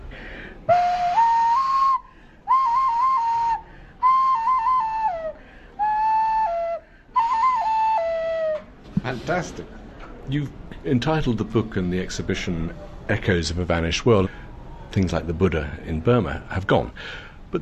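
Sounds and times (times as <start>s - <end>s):
nose flute playing: 0.6s - 8.7s
speech: 9.3s - 17.6s.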